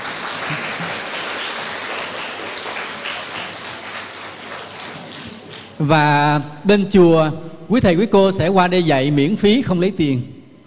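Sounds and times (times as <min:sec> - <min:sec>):
schoolchildren clapping at their school: 0:00.0 - 0:05.9
speech: 0:05.8 - 0:10.3.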